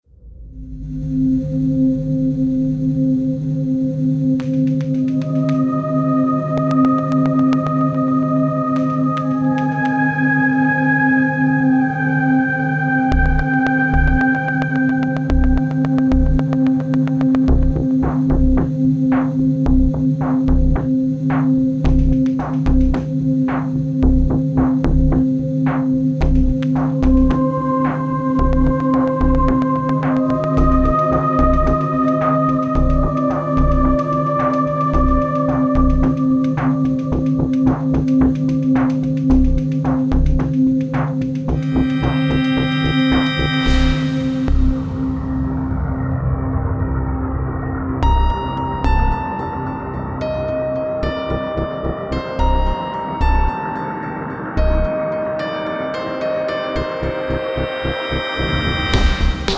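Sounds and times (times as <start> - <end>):
tension music: 0.0 - 59.5.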